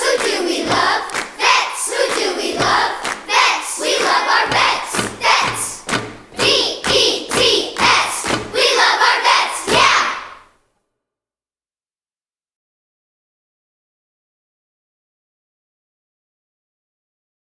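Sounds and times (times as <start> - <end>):
child percussion: 0.0 - 10.5.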